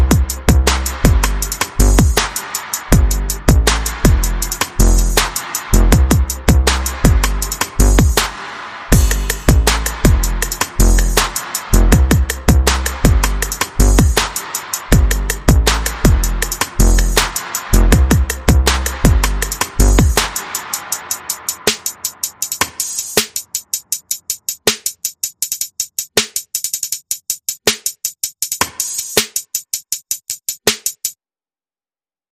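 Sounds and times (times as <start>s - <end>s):
bass: 0.0s - 20.5s
percussion: 0.0s - 31.2s.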